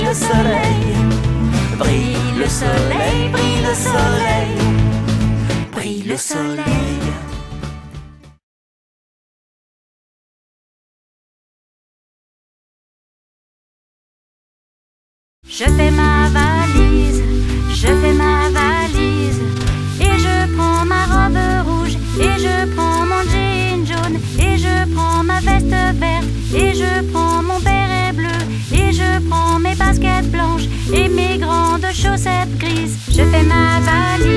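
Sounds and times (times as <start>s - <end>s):
children's songs: 0.0s - 7.8s, 15.5s - 34.3s.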